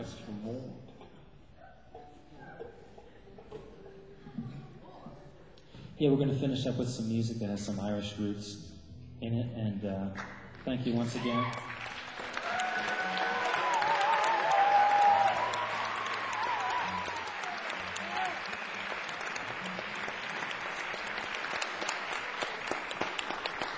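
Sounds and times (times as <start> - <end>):
speech: 6.0 - 11.8
audience applause: 11.0 - 23.7.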